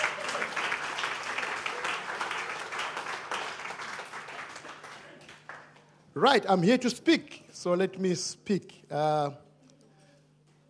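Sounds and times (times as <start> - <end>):
audience clapping hands: 0.0 - 6.1
speech: 6.2 - 9.4.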